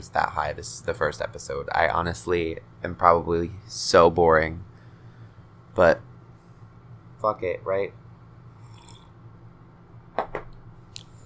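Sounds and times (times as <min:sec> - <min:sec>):
speech: 0:00.0 - 0:04.7, 0:05.8 - 0:06.1, 0:07.2 - 0:08.0
low steady hum: 0:00.0 - 0:11.2
slurping sips of tea: 0:08.6 - 0:09.1.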